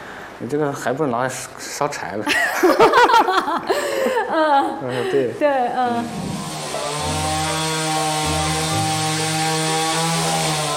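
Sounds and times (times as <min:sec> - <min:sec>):
speech: 0:00.4 - 0:06.3
laughter: 0:02.3 - 0:05.4
chainsaw carving a wooden sculpture of a human figure: 0:05.9 - 0:10.7.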